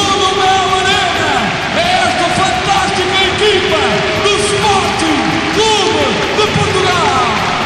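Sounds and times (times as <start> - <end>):
packed indoor arena crowd applauding and cheering: 0.0 - 7.6.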